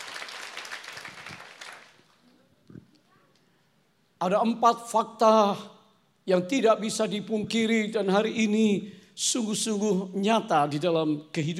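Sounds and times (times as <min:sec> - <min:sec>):
audience applause: 0:00.0 - 0:02.2
speech: 0:04.2 - 0:05.7, 0:06.3 - 0:11.5.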